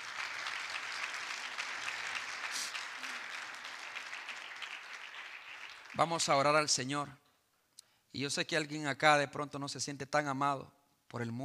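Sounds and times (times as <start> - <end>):
audience applauding: 0.0 - 6.8
speech: 6.0 - 7.2, 8.1 - 11.4.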